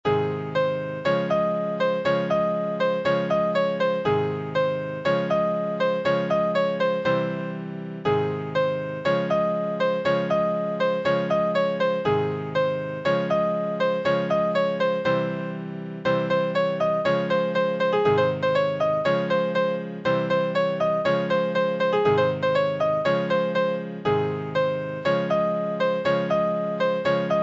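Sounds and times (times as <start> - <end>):
piano: 0.0 - 27.4.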